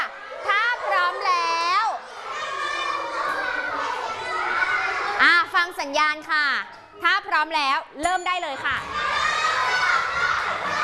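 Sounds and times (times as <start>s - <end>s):
group of children cheering and shouting: 0.0s - 5.3s, 8.8s - 10.8s
speech: 5.8s - 9.3s.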